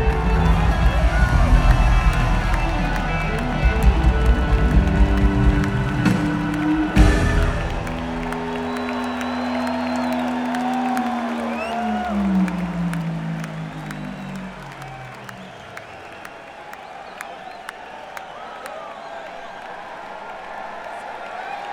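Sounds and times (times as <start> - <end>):
blues music: 0.0 - 15.7.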